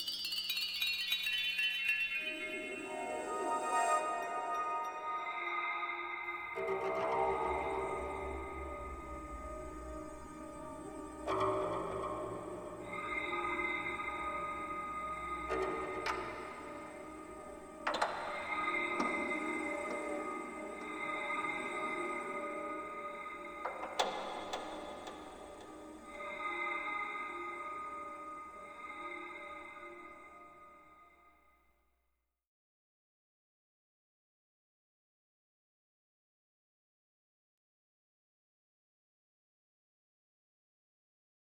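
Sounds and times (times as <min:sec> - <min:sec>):
astral world ambient soundscape: 0:00.0 - 0:31.2.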